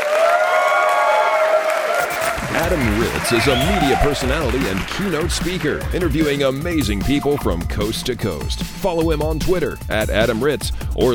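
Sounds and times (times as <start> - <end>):
audience applause: 0.0 - 6.0
speech: 2.6 - 11.1.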